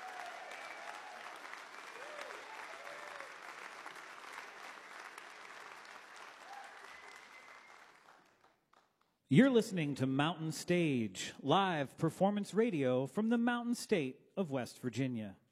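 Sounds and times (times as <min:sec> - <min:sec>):
audience applause: 0:00.0 - 0:08.9
speech: 0:09.3 - 0:15.4.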